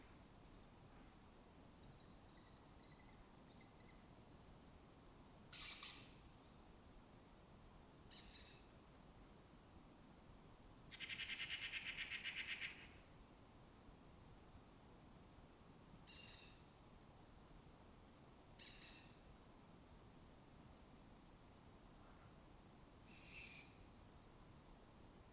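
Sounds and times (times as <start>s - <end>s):
lesser kestrel calling: 5.5s - 6.2s, 8.1s - 8.6s, 10.9s - 13.0s, 16.1s - 16.6s, 18.6s - 19.1s, 23.1s - 23.8s.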